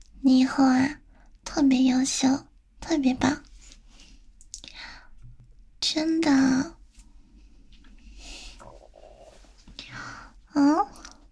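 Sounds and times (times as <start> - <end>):
speech: 0.2 - 1.0, 1.6 - 3.5, 5.8 - 6.8, 10.6 - 11.0
stomach growling: 8.6 - 9.6.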